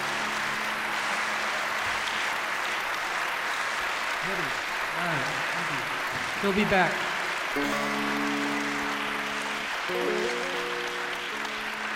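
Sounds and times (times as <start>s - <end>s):
students clapping loudly: 0.0s - 11.9s
speech: 4.2s - 8.6s, 9.9s - 10.4s
sustained musical chords: 7.2s - 11.9s.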